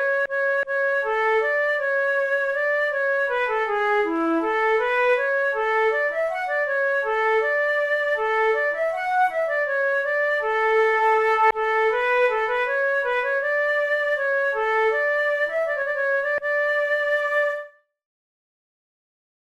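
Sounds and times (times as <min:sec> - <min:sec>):
baroque flute piece: 0:00.0 - 0:17.9.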